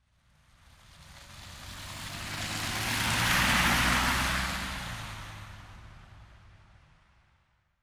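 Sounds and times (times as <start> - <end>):
car driving by in the rain: 0.9 - 5.8.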